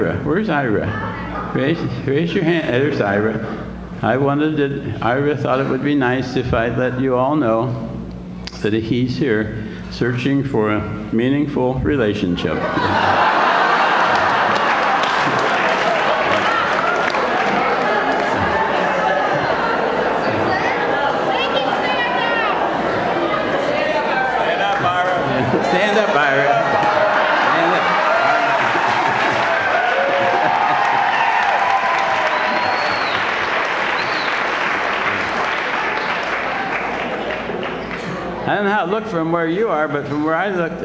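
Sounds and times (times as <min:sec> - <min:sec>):
speech: 0:00.0 - 0:07.9, 0:08.6 - 0:13.3, 0:39.0 - 0:40.8
laughter: 0:12.5 - 0:21.8, 0:22.6 - 0:34.3
audience applauding: 0:12.9 - 0:20.6, 0:26.0 - 0:38.4.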